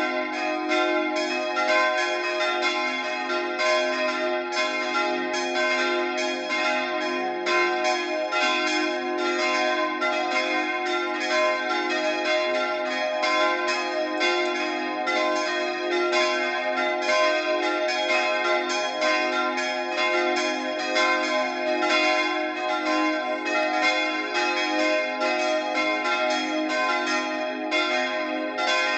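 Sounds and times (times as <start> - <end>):
bells ringing: 0.0 - 28.9.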